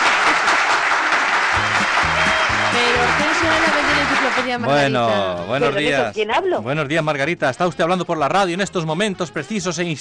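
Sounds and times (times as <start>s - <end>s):
applause: 0.0s - 4.8s
speech: 2.8s - 9.9s.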